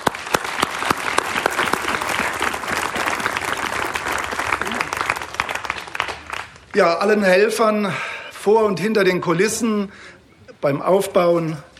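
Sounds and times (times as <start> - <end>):
audience applause: 0.0 - 6.8
speech: 6.8 - 11.7.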